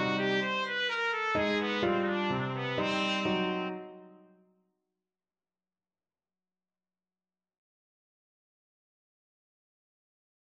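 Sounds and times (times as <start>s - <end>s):
trumpet playing a mazurka: 0.0s - 4.2s.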